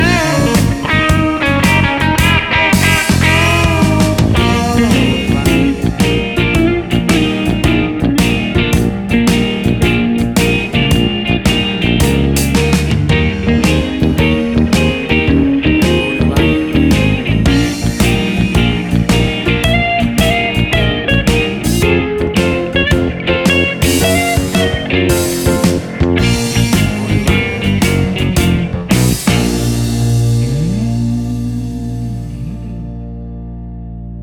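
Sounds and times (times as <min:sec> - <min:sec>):
bouncy blues music: 0:00.0 - 0:34.2.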